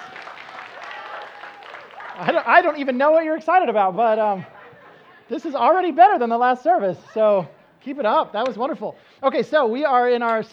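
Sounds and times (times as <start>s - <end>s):
person clapping: 0.0s - 3.0s
laughter: 0.0s - 8.8s
speech: 2.2s - 4.6s, 5.3s - 10.5s.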